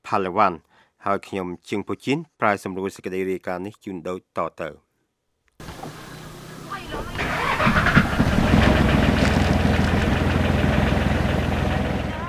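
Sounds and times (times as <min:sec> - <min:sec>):
speech: 0:00.1 - 0:04.9
fishing boat engine rumble on the South China Sea off Palawan's west coast: 0:05.6 - 0:12.2.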